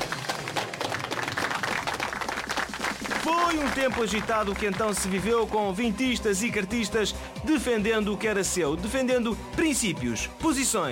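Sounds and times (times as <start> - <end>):
audience clapping for quiz show contestants: 0.0 - 6.0
speech: 3.3 - 10.9.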